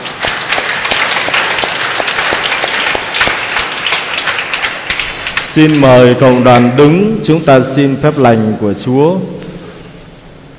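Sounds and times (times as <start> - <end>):
audience applauding: 0.0 - 6.4
speech: 5.6 - 9.4.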